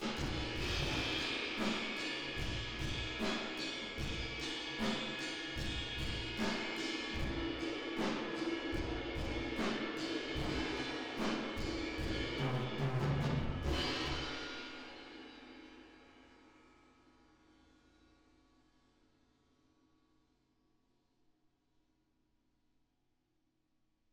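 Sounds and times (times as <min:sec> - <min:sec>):
drums with reverb: 0:00.0 - 0:16.0.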